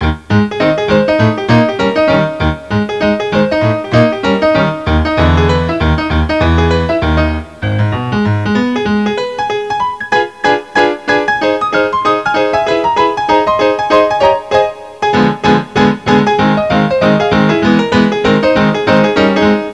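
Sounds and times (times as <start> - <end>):
ragtime music: 0.0 - 19.7.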